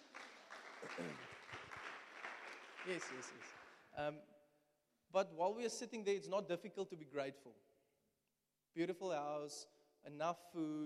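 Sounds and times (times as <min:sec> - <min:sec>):
people clapping: 0:00.0 - 0:04.0
speech: 0:00.9 - 0:01.3, 0:02.8 - 0:04.4, 0:05.1 - 0:07.7, 0:08.7 - 0:10.8.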